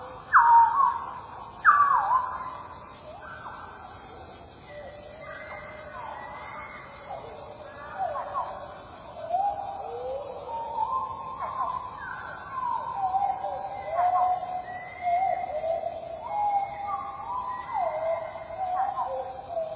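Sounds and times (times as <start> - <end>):
chiffchaff calls and song slowed four times and lowered two octaves: 0.0 - 19.7.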